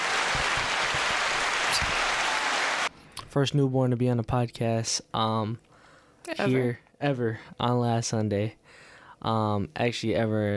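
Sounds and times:
round of applause: 0:00.0 - 0:02.9
speech: 0:03.3 - 0:10.5.

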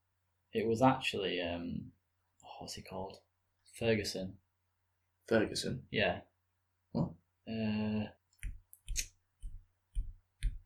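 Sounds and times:
speech: 0:00.5 - 0:04.4, 0:05.3 - 0:06.3, 0:06.9 - 0:08.2
person making clicking sounds: 0:08.4 - 0:10.6.

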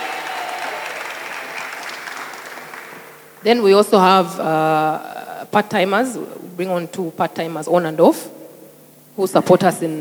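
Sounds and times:
audience clapping: 0:00.0 - 0:03.5
speech: 0:03.4 - 0:08.4, 0:09.2 - 0:10.0.

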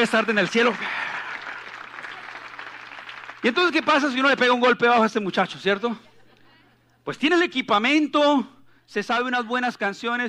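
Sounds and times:
speech: 0:00.0 - 0:01.1, 0:03.4 - 0:06.1, 0:07.0 - 0:10.2
audience applause: 0:00.0 - 0:04.7.

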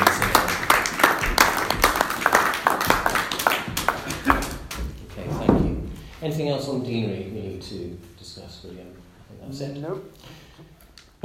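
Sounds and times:
round of applause from meeting attendees: 0:00.0 - 0:05.1
speech: 0:06.3 - 0:11.2.

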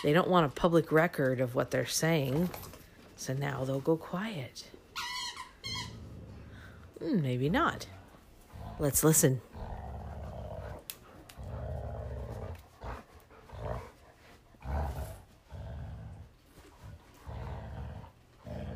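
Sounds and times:
speech: 0:00.0 - 0:05.1, 0:07.0 - 0:08.0, 0:08.8 - 0:09.8
black Labrador growling while playing tug with a toy: 0:05.6 - 0:18.7.

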